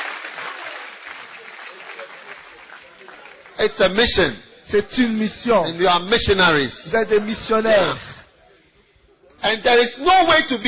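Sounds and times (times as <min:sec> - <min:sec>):
audience clapping: 0:00.0 - 0:03.8
speech: 0:03.6 - 0:08.1, 0:09.4 - 0:10.6.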